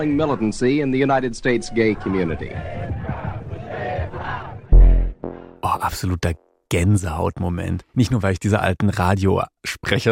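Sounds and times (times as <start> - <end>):
speech: 0.0 - 2.8, 5.7 - 10.0
protest crowd chanting slogans at march: 2.4 - 5.6
strong low-pitched blare: 4.7 - 5.9.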